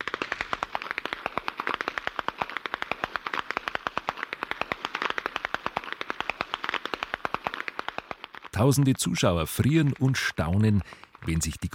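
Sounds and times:
Aperschnalzen whip cracking competition over snowy meadows: 0:00.0 - 0:08.5
speech: 0:08.6 - 0:11.7.

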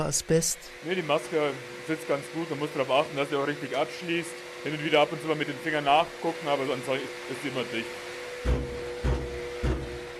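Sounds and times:
speech: 0:00.0 - 0:08.7
asbestos dust extraction unit humming: 0:00.0 - 0:10.1
dust extraction unit knocking loudly: 0:08.4 - 0:10.1.

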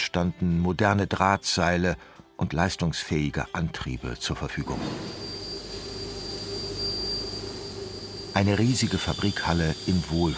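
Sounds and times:
speech: 0:00.1 - 0:05.2, 0:08.4 - 0:10.3
low hum: 0:04.6 - 0:08.8
shrill whistle of laser cutting steel plates: 0:04.6 - 0:10.3.

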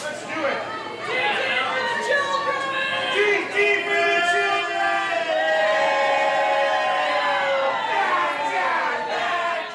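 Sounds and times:
busy fish market crowd with overlapping voices and shouted calls: 0:00.0 - 0:09.7.

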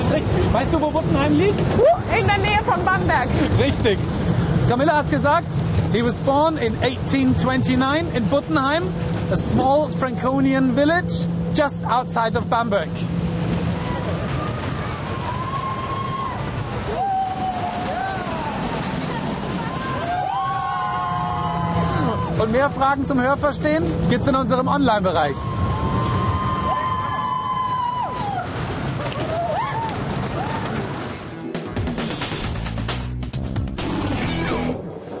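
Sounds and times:
roller coaster roaring past: 0:00.0 - 0:35.1
speech: 0:00.2 - 0:13.2, 0:22.5 - 0:25.6
roller coaster riders screaming: 0:13.7 - 0:22.5, 0:25.3 - 0:31.0.

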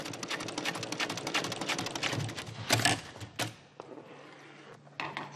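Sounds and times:
sewing machine stitching leather seams in a vehicle interior upholstery workshop: 0:00.0 - 0:03.6.

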